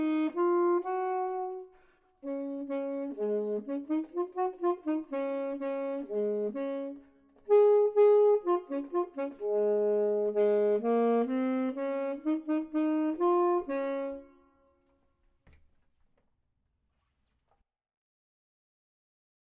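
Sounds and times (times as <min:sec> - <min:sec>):
clarinet: 0:00.0 - 0:14.9
saxophone: 0:00.0 - 0:14.9.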